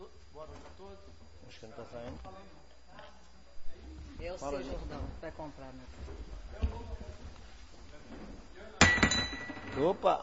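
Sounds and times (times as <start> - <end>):
speech: 0.4 - 3.2, 3.8 - 7.1, 8.0 - 10.2
glass cup stuck with glue clinking and rattling: 8.8 - 9.9.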